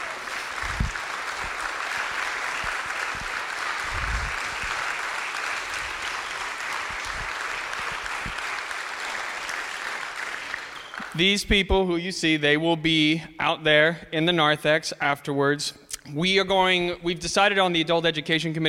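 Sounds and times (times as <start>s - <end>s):
audience applause: 0.0s - 11.2s
speech: 11.2s - 18.6s.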